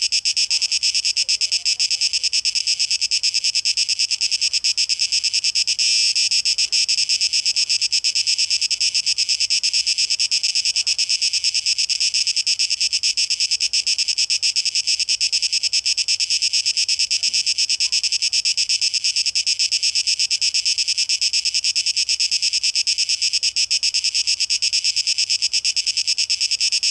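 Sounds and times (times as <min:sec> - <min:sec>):
cicadas buzzing: 0:00.0 - 0:26.8.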